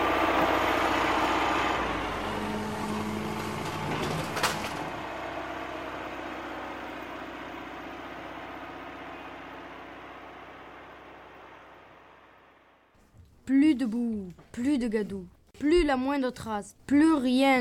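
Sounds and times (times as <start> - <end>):
excavators, bulldozers and concrete mixers working: 0.0 - 12.9
speech: 13.5 - 17.5.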